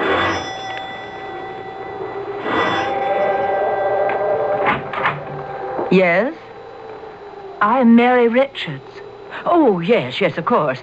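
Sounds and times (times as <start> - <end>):
doorbell ringing: 0.0 - 6.6
speech: 5.9 - 6.4, 7.6 - 10.8.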